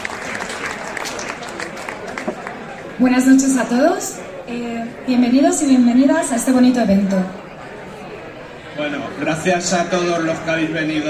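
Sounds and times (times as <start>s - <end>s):
audience applause at a metal concert: 0.0s - 3.2s
speech: 3.0s - 7.4s, 9.2s - 11.0s.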